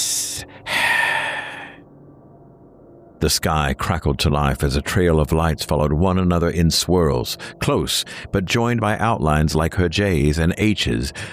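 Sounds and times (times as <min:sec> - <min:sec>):
voice hissing: 0:00.0 - 0:01.8
speech: 0:03.2 - 0:11.3.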